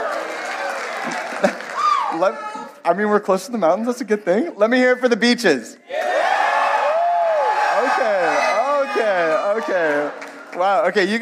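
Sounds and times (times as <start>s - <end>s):
audience cheering: 0.0s - 2.7s, 5.9s - 11.2s
speech: 1.0s - 1.6s, 2.2s - 6.2s, 7.8s - 11.2s.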